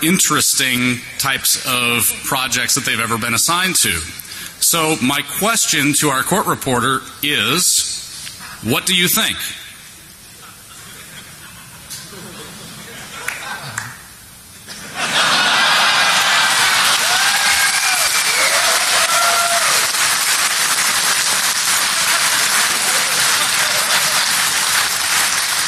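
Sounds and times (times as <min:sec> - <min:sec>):
speech: 0:00.0 - 0:08.0, 0:08.6 - 0:09.6
laughter: 0:10.2 - 0:14.0, 0:14.7 - 0:18.0, 0:20.9 - 0:25.4
crowd applause: 0:14.7 - 0:25.6.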